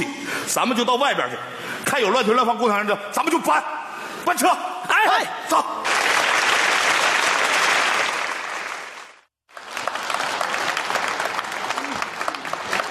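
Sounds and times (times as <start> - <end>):
speech: 0.5 - 5.7
audience applause: 5.8 - 12.9.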